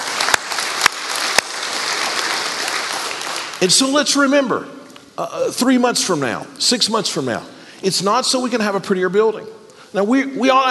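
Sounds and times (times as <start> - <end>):
audience clapping: 0.0 - 4.1
speech: 3.6 - 10.6.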